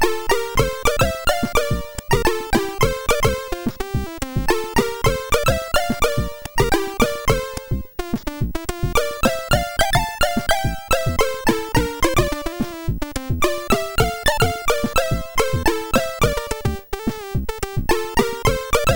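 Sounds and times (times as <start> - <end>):
chiptune intro music on a MOS6581R4 SID chip: 0.0 - 18.9.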